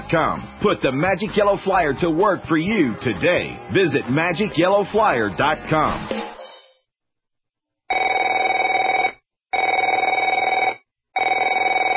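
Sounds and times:
speech: 0.1 - 6.3
telephone ringing: 7.9 - 11.9.

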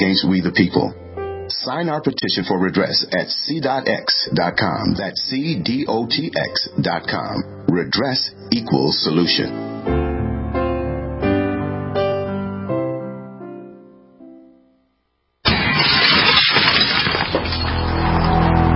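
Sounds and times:
speech: 0.0 - 10.0
piano-like chords: 0.0 - 14.8
glass smashing during a home burglary break-in: 15.4 - 18.7.

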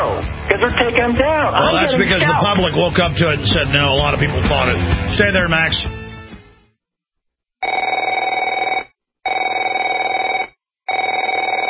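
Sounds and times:
speech: 0.6 - 6.0
telephone ringing: 7.6 - 11.6.

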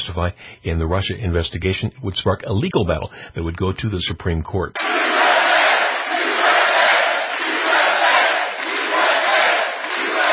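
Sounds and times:
speech: 0.1 - 5.3
large rally crowd cheering: 4.8 - 10.3.

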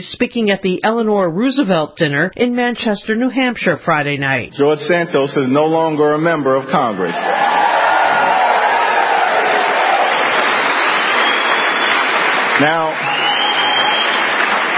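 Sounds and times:
speech: 0.0 - 7.7, 12.6 - 13.1
audience applause: 6.1 - 14.7.

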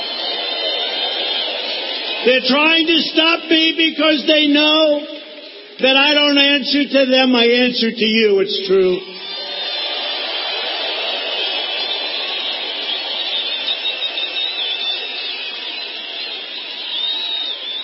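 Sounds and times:
shrill whistles: 0.0 - 2.8, 9.0 - 17.8
rally crowd applauding and cheering: 0.0 - 6.7, 8.7 - 17.8
speech: 2.2 - 5.2, 5.8 - 9.1.

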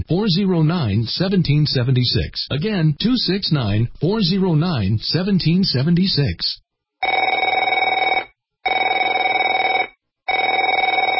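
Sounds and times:
speech: 0.0 - 6.6
telephone ringing: 7.0 - 11.1.

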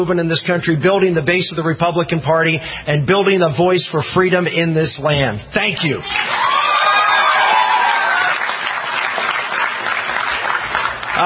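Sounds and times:
speech: 0.0 - 6.6
crowd cheering: 6.0 - 11.2.

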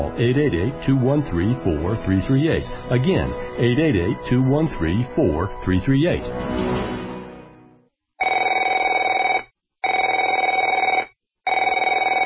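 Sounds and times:
speech: 0.0 - 6.9
telephone ringing: 8.2 - 12.2.

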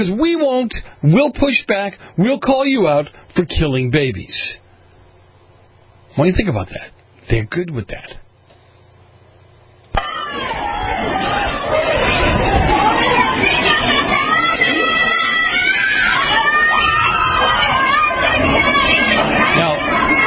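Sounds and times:
speech: 0.0 - 4.6, 6.2 - 8.2
crowd yelling in a church: 9.9 - 20.2.

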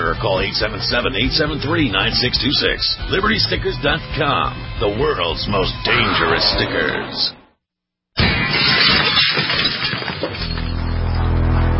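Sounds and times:
speech: 0.2 - 7.4
glass shattering as a staged home break-in sound effect: 8.2 - 11.2.

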